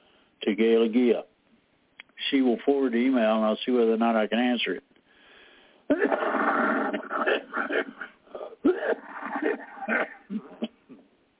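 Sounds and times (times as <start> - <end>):
speech: 0.5 - 1.3, 2.3 - 4.9, 5.9 - 6.7, 7.3 - 10.5
person coughing with raspy wheezy hacking: 5.9 - 11.1
throat clearing: 5.9 - 11.1.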